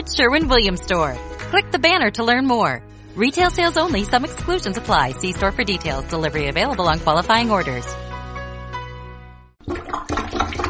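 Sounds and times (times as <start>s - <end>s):
speech: 0.0s - 8.0s
clogged toilet drain being plunged, churning rush of gurgling water: 9.6s - 10.6s.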